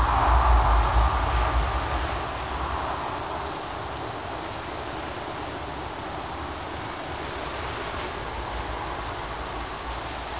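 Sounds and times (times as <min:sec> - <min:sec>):
wind ambience: 0:00.0 - 0:10.3.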